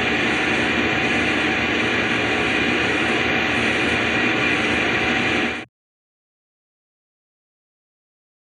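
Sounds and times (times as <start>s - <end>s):
conveyor running: 0.0s - 5.7s.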